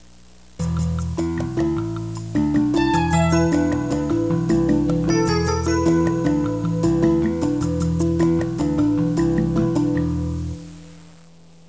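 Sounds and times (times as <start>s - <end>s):
new age music: 0.6s - 10.7s.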